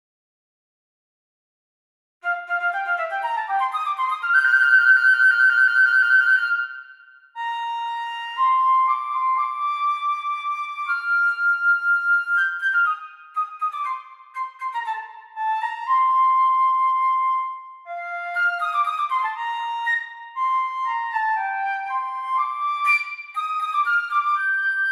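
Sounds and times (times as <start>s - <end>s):
flute: 2.2s - 24.8s.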